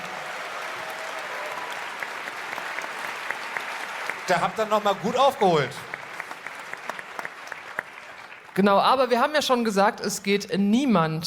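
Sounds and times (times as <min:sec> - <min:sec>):
audience applause: 0:00.0 - 0:08.6
speech: 0:04.3 - 0:05.8, 0:08.6 - 0:11.2.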